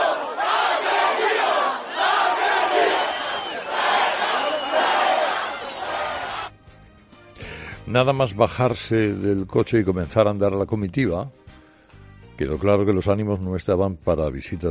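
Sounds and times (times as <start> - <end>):
angry crowd chanting insults: 0.0 - 6.5
speech: 7.9 - 11.4, 12.4 - 14.6.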